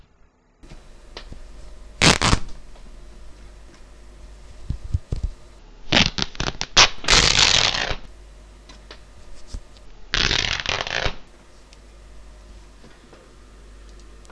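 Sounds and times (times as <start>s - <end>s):
something tearing: 2.0s - 2.5s, 5.9s - 8.1s, 10.1s - 11.2s.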